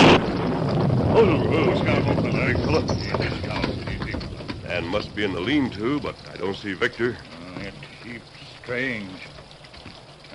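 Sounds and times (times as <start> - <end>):
storm wind roaring: 0.0 - 6.9
speech: 1.2 - 3.7, 4.8 - 9.3.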